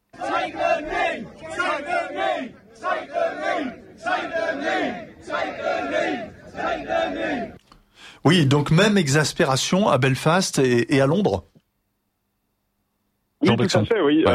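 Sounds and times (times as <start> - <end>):
protest crowd shouting: 0.1 - 7.6
speech: 8.2 - 11.5, 13.5 - 14.3.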